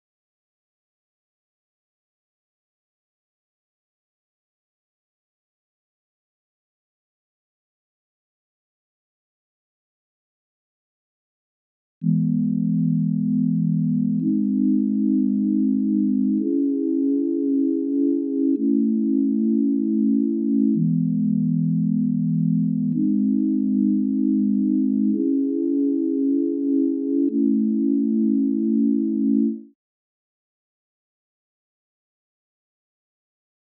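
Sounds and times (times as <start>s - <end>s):
synth pad in E major: 12.0s - 29.8s.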